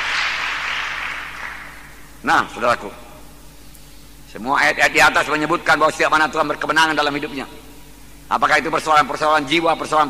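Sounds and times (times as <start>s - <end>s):
audience applause: 0.0s - 1.7s
speech: 2.2s - 3.0s, 4.4s - 7.6s, 8.3s - 10.0s.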